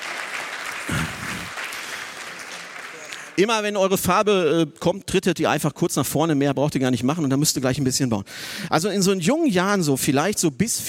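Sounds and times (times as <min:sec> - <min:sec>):
crowd applauding: 0:00.0 - 0:03.5
speech: 0:03.4 - 0:10.8.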